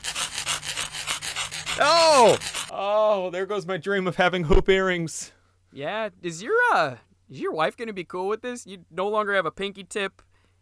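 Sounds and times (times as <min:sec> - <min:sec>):
razor blade shaving an earlobe: 0:00.0 - 0:02.7
speech: 0:01.8 - 0:10.3.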